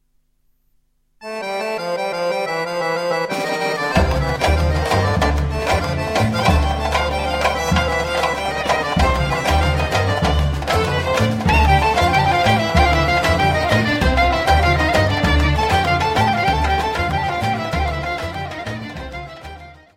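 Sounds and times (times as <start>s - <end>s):
cocek music from Greece: 1.2s - 19.9s.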